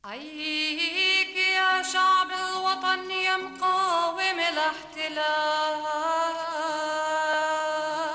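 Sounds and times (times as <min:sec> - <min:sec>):
vocals: 0:00.0 - 0:08.1.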